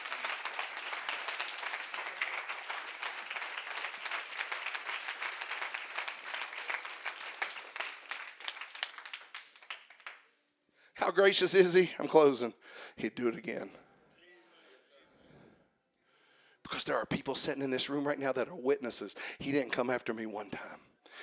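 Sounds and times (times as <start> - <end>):
crowd applause: 0.0 - 10.2
speech: 11.1 - 13.8, 17.0 - 20.8.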